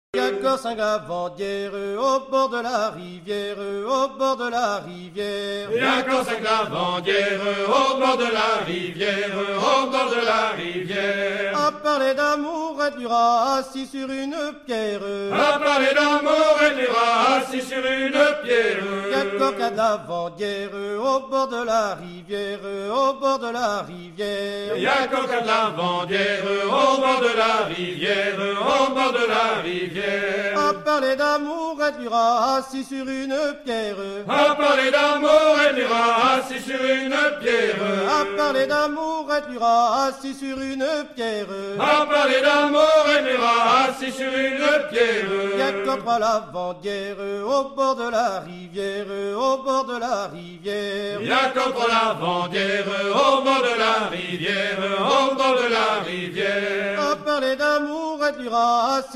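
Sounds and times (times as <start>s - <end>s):
chanting: 0.1s - 59.1s.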